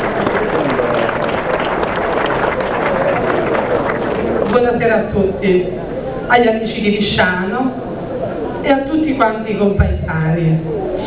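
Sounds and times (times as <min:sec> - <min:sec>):
audience applause: 0:00.0 - 0:04.7
speech: 0:04.8 - 0:07.8, 0:08.6 - 0:11.0.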